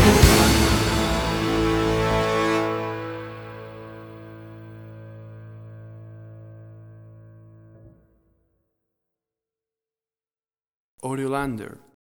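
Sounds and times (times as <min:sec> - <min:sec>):
big epic music: 0:00.0 - 0:07.3.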